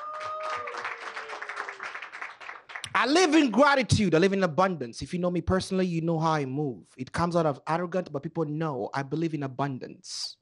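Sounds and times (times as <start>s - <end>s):
audience clapping: 0.0s - 3.5s
speech: 3.0s - 10.4s.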